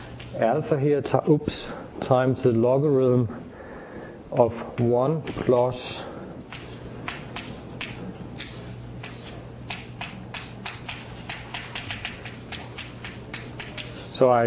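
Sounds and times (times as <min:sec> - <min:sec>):
speech: 0:00.4 - 0:03.5, 0:04.3 - 0:06.1, 0:14.2 - 0:14.4
writing down a mathematical formula: 0:06.5 - 0:14.1.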